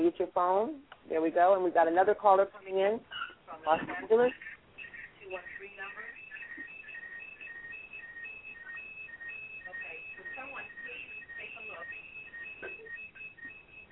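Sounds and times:
speech: 0.2s - 4.6s
alarm going off: 3.9s - 13.9s.

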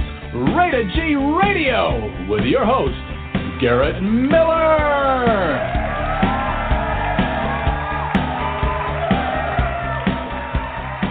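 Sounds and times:
speech: 0.3s - 5.8s
studio audience cheering: 4.6s - 11.0s
whoops and shouts: 4.8s - 11.0s
regular rhythmic pulse: 5.3s - 11.0s.

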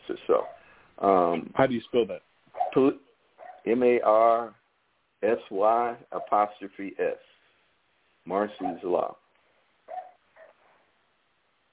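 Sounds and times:
dog barking: 0.3s - 0.7s, 2.5s - 2.8s, 3.4s - 3.7s, 6.2s - 6.4s, 8.5s - 8.9s, 9.9s - 10.8s
speech: 0.3s - 4.6s, 5.2s - 7.3s, 8.2s - 9.2s.

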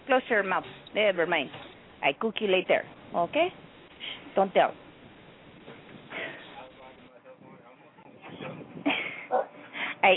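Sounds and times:
low murmur: 0.0s - 10.1s
speech: 0.1s - 4.8s
dogs barking and whimpering: 8.0s - 9.9s.

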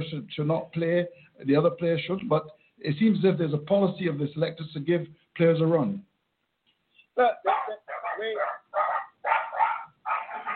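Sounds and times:
speech: 0.0s - 6.1s, 7.2s - 8.4s
big dogs barking: 7.4s - 10.5s.

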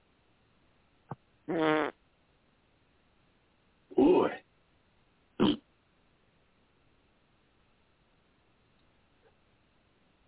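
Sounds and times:
speech: 1.5s - 1.7s
mouth-made fart noise: 1.5s - 2.0s, 5.4s - 5.6s.

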